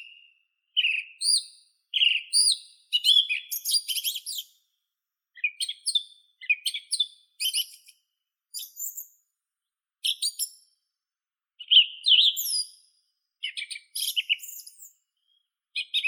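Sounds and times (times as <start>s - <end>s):
song thrush Turdus philomelos singing: 0.0s - 4.6s, 5.3s - 7.9s, 10.0s - 10.7s, 11.6s - 12.8s, 13.4s - 16.0s.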